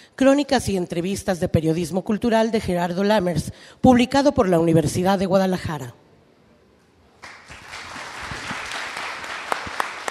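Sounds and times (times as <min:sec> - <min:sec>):
speech: 0:00.2 - 0:06.0
audience applause: 0:07.2 - 0:10.0.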